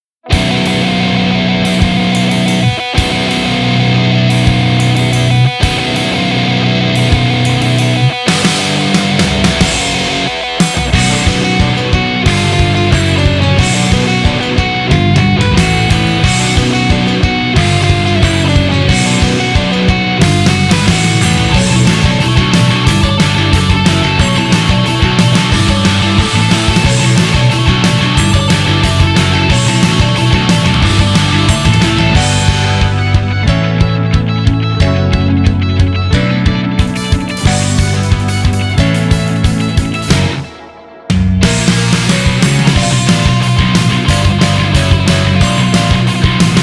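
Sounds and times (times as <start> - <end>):
off vocal instrumental music: 0.3 - 46.6.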